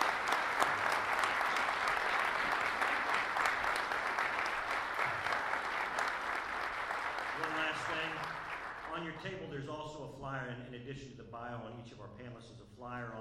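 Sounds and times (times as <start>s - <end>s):
audience applause for panelists: 0.0s - 9.4s
speech: 10.8s - 13.1s.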